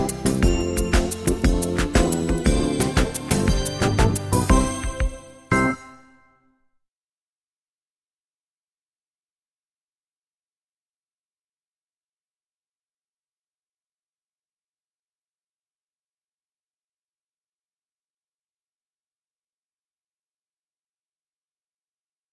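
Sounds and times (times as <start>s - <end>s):
song playback: 0.0s - 6.3s.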